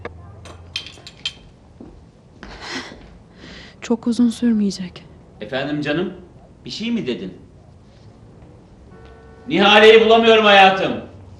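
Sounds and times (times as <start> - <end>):
tea glasses and spoons clinking while serving: 0.4 - 1.5
speech: 3.9 - 7.4, 9.5 - 11.1.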